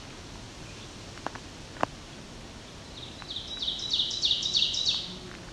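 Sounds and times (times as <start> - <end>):
ovenbird song: 0.6 - 1.0, 2.6 - 5.2.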